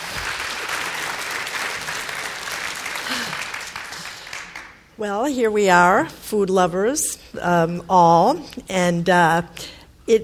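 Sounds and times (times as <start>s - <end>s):
audience applause welcoming speakers onto the stage at an evening food talk: 0.0s - 4.8s
speech: 5.0s - 10.2s.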